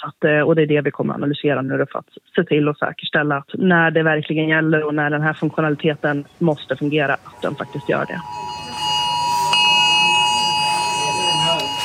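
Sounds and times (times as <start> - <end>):
speech: 0.0 - 8.5
murmuring voices: 5.7 - 11.8
mobile phone emergency alert test tone: 7.3 - 11.8.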